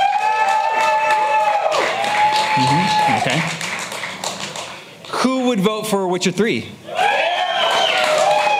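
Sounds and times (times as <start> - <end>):
loud whoops and shouts from an audience: 0.0 - 3.4, 6.8 - 8.5
audience applause as a vote for Metal Gear Solid 5 in a game-of-the-year poll: 0.0 - 4.9, 7.0 - 8.5
speech: 5.5 - 6.8.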